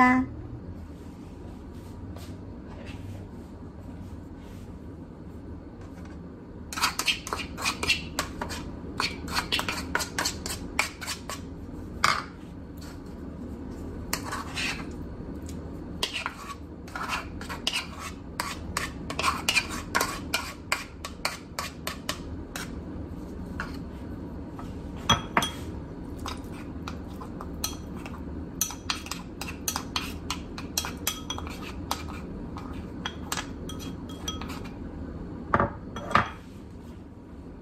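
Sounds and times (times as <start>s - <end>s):
garlic and salt-and-pepper powder mixed in a bowl: 0.8s - 37.2s.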